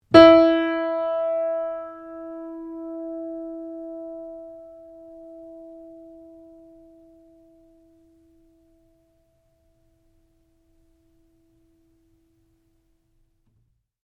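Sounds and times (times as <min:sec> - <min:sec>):
out-of-tune baby grand piano notes E3 and F: 0:00.1 - 0:09.4.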